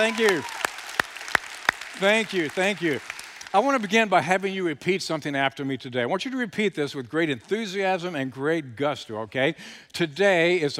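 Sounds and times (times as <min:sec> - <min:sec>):
speech: 0:00.0 - 0:00.6, 0:02.0 - 0:10.7
audience hand claps welcoming a speaker: 0:00.0 - 0:03.9.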